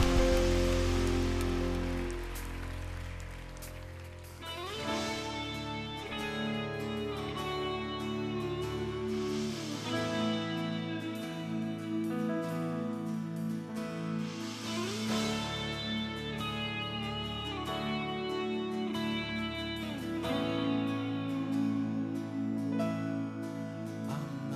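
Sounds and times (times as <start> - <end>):
audience applause: 0.0 - 4.8
sustained instrumental chords: 0.0 - 24.5.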